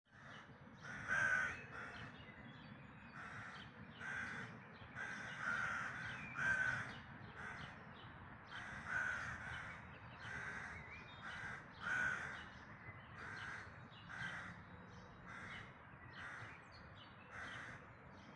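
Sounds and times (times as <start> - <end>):
bird hoarse cawing in a dawn chorus: 0.1 - 2.2, 3.2 - 7.8, 8.5 - 12.5, 13.2 - 14.6, 15.3 - 16.6, 17.3 - 18.3.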